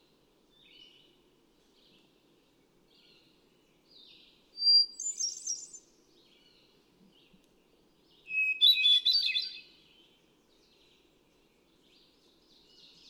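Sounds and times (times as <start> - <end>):
hermit thrush song: 4.6 - 5.8, 8.3 - 9.7.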